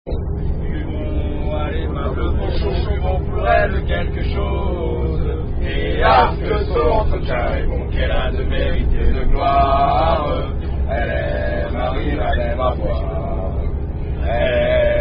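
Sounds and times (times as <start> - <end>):
people singing a French rugby song: 0.7 - 13.6, 14.2 - 15.0.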